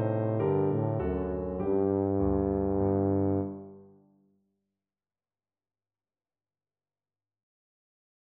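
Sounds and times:
tuba playing a Baroque air: 0.0s - 3.7s.

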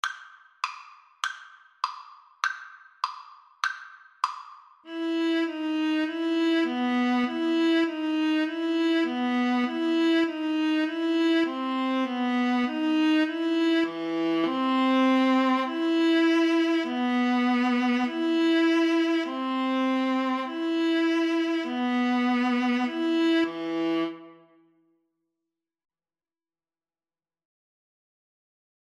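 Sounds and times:
viola duet: 4.9s - 24.6s.

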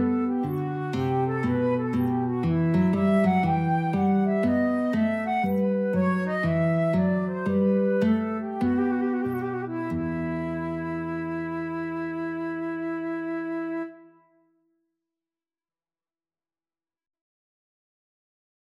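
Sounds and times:
flute and guitar playing a bourree: 0.0s - 14.5s.

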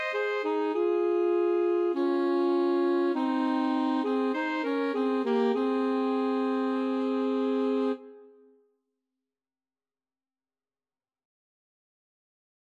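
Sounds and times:
alto saxophone duet: 0.0s - 8.4s.

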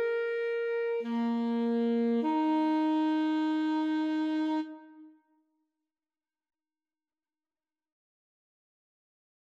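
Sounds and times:
clarinet: 0.0s - 5.2s
saxophone: 0.0s - 5.2s.

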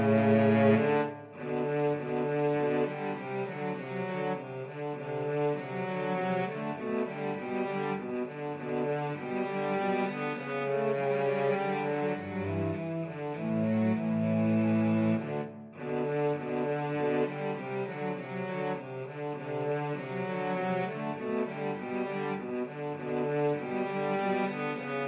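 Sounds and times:
cello duet: 0.0s - 25.0s.

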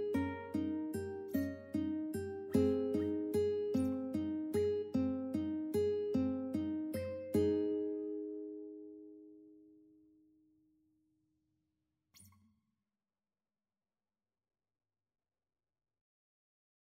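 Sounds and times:
ukulele: 0.0s - 9.1s.

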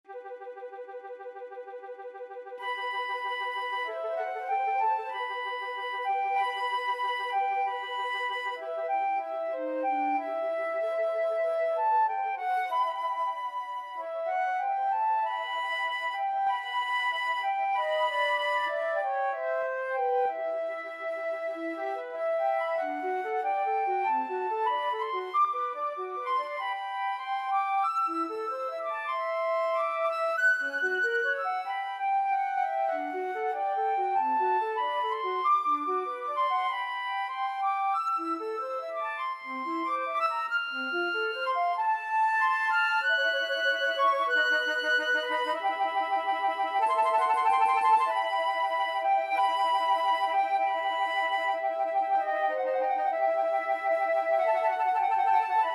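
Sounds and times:
flute duet in a scene finale: 0.0s - 55.7s.

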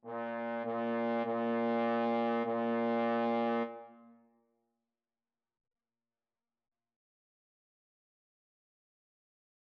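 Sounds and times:
trombone duet: 0.0s - 3.7s.

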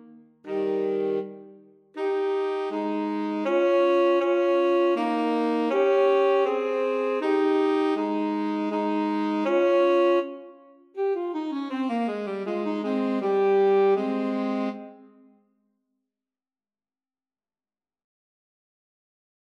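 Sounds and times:
saxophone playing a baroque gavotte: 0.0s - 15.3s.

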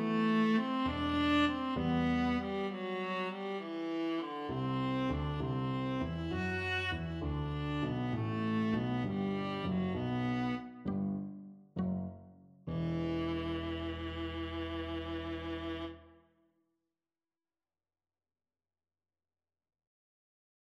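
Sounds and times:
viola: 0.0s - 12.1s, 12.7s - 16.1s
cello in a concerto: 0.0s - 16.2s.

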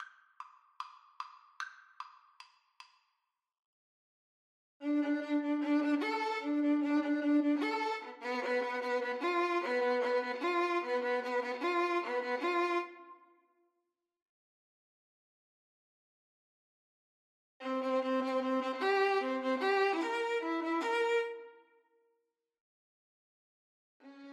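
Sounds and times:
violin duet: 4.8s - 13.0s, 17.6s - 21.5s.

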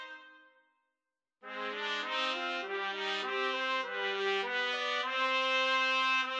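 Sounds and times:
trumpet trio playing: 1.5s - 6.3s.

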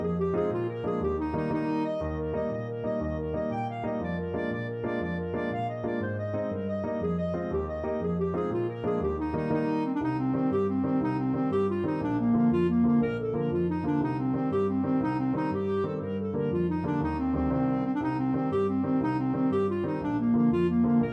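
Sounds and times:
Irish jig medley played on clarinet: 0.0s - 21.1s.

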